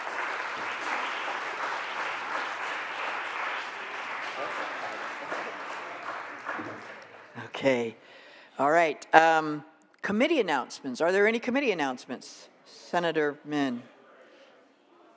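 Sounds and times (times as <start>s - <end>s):
applause in a state Senate chamber welcoming a guest: 0.0s - 7.5s
speech: 7.6s - 8.0s, 8.6s - 13.9s.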